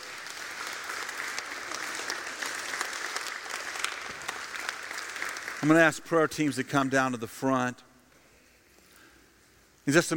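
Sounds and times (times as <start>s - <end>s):
audience clapping: 0.0s - 7.1s
speech: 5.6s - 7.9s, 9.9s - 10.1s.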